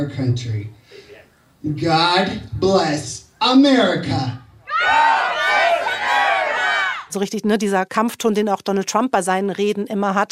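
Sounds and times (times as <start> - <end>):
speech: 0.0 - 1.0, 1.6 - 5.2, 7.1 - 10.2
large rally crowd cheering and shouting: 4.7 - 7.1.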